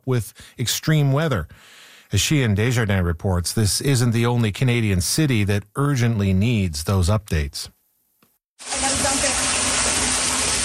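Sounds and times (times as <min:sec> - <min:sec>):
speech: 0:00.0 - 0:07.8
floodwater gushing: 0:08.6 - 0:10.6.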